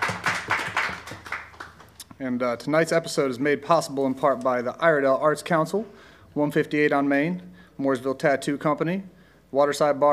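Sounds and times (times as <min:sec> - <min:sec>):
audience applause: 0:00.0 - 0:01.9
speech: 0:02.2 - 0:10.1.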